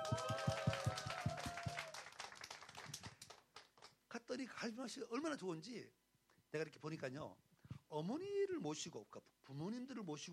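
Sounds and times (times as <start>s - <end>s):
audience applause: 0.0s - 3.9s
speech: 4.6s - 10.3s.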